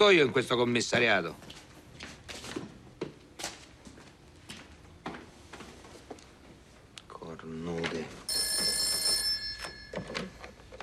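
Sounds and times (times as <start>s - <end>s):
speech: 0.0s - 1.6s
telephone bell ringing in a police station office: 8.3s - 10.8s.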